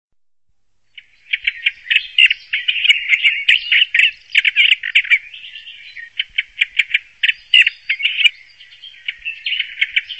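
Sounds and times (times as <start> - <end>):
bird harsh chattering: 1.0 - 10.1.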